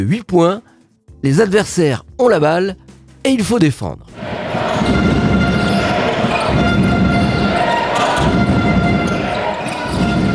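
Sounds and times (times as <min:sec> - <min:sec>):
speech: 0:00.0 - 0:05.0
basketball home crowd of Chaland cheering on defense: 0:04.1 - 0:10.3
rhythmic thumps beneath crowd: 0:04.1 - 0:10.3.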